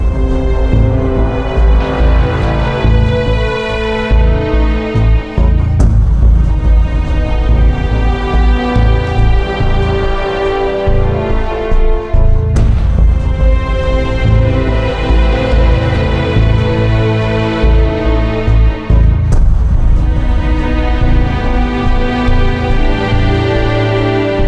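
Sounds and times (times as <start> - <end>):
stealth cave ambience: 0.0 - 24.4.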